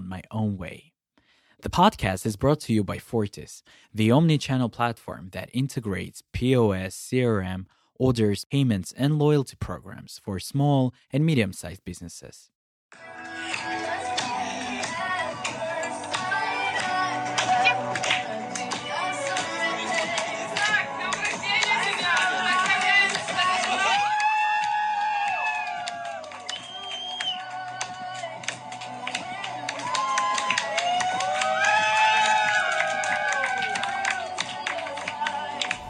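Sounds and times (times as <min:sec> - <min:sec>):
speech: 0:00.1 - 0:00.9, 0:01.6 - 0:13.1
hand claps: 0:13.5 - 0:35.8
group of friends singing in unison: 0:13.8 - 0:23.8.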